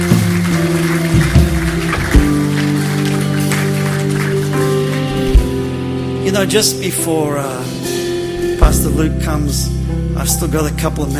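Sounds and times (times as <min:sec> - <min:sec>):
audience clapping applause: 0:00.0 - 0:05.9
speech: 0:06.4 - 0:07.7, 0:08.7 - 0:11.1.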